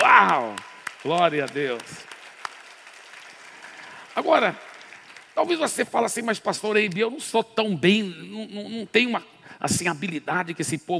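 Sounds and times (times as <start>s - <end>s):
audience applause: 0.0s - 6.0s
speech: 0.2s - 2.1s, 4.2s - 4.7s, 5.4s - 10.9s.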